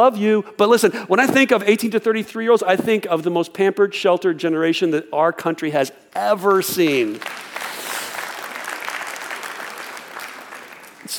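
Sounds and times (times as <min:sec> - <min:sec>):
speech: 0:00.0 - 0:07.7
audience clapping: 0:06.5 - 0:11.1.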